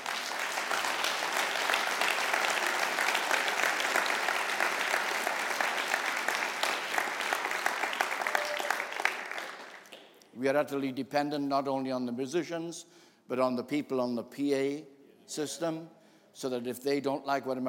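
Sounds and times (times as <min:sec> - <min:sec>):
audience applause: 0:00.0 - 0:10.0
speech: 0:10.4 - 0:17.6.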